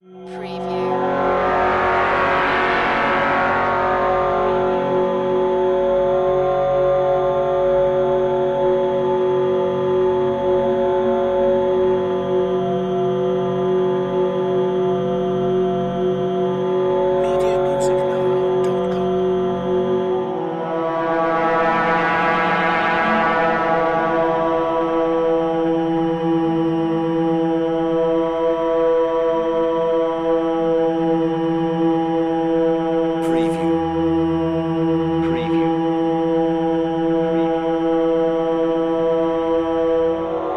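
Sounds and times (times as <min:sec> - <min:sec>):
synth bed production element: 0:00.0 - 0:40.5.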